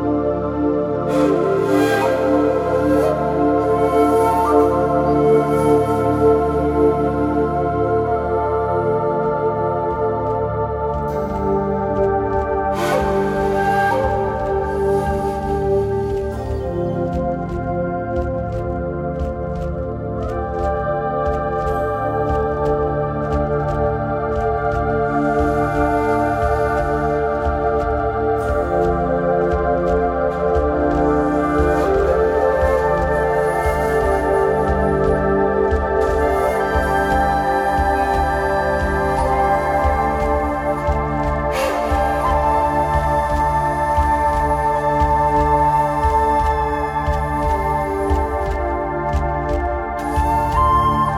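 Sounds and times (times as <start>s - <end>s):
drums: 0.2s - 51.1s.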